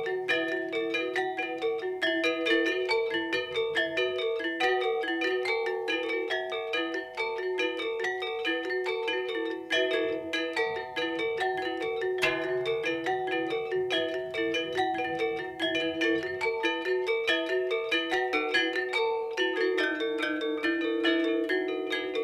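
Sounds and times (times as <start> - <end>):
Asak selunding gamelan music: 0.0 - 22.2.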